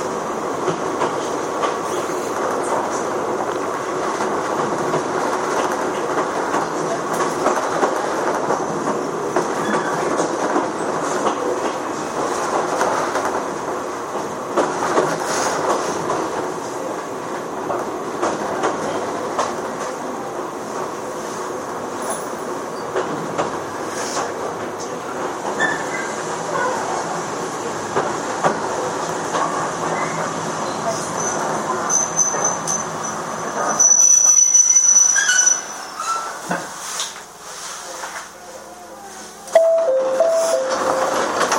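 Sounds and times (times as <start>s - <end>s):
Chichibu Railway Series 7500 train running between Hanyu and Kumagaya: 0.0s - 41.5s
sharp squeal: 31.2s - 36.4s.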